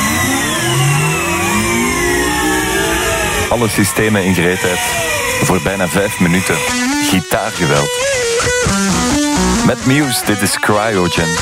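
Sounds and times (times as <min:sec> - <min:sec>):
supercomputer starting up sound effect whirring: 0:00.0 - 0:05.9
speech: 0:03.5 - 0:11.4.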